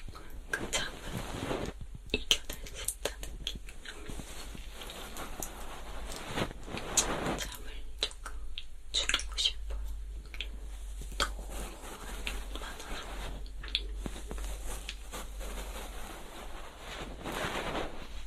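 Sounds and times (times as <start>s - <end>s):
faint steady low hum: 0.0s - 18.2s
ear cleaning with a feather pick: 0.1s - 1.9s, 3.8s - 7.8s, 10.6s - 18.2s.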